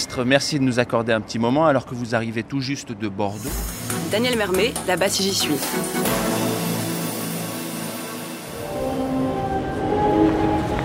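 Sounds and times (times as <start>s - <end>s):
speech: 0.1s - 6.4s
train from Bordeaux arriving at Paris-Montparnasse railway station: 3.4s - 10.8s.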